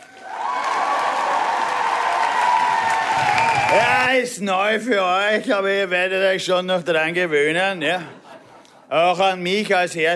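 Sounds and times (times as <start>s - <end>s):
artificial audience applause: 0.0s - 4.2s
artificial audience cheering: 0.0s - 4.3s
speech: 3.7s - 8.2s, 8.9s - 10.1s
laughter: 7.8s - 9.4s.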